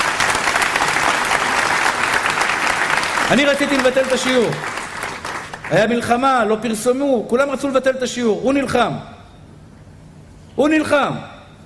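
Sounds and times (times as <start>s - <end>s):
audience applause: 0.0s - 5.9s
speech: 3.3s - 4.7s, 5.7s - 9.1s, 10.6s - 11.3s.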